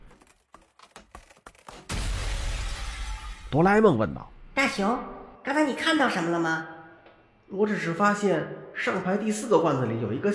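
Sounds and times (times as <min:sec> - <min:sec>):
glass shattering: 0:01.7 - 0:03.5
speech: 0:03.5 - 0:06.7, 0:07.5 - 0:10.3.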